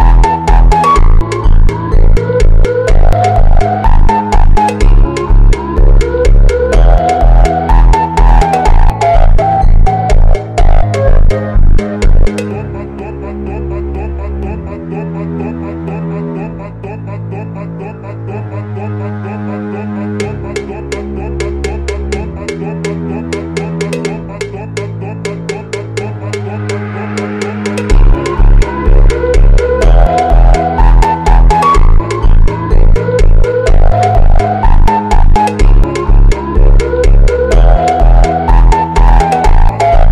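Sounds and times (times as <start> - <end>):
slowed funk music: 0.0 - 12.9, 20.2 - 40.1.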